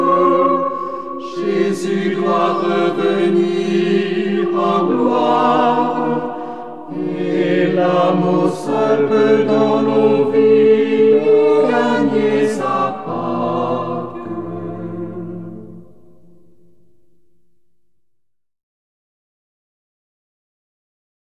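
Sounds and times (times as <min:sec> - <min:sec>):
unifying group song: 0:00.0 - 0:16.2.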